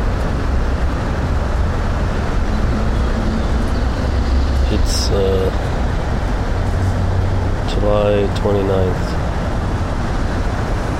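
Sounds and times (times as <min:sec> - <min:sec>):
highway traffic roar from sunken expressway: 0:00.0 - 0:10.9
speech: 0:07.8 - 0:09.2.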